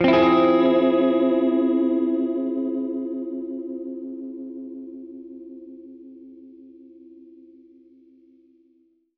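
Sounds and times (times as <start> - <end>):
Gretsch guitar F minor major seventh chord: 0.0 - 7.2.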